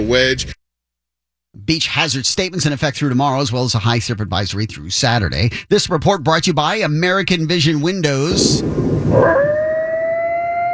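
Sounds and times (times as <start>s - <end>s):
speech: 0.1s - 0.6s, 1.6s - 9.4s
pack of coyotes howling in a partially framed building at a stalled construction site: 8.6s - 10.7s.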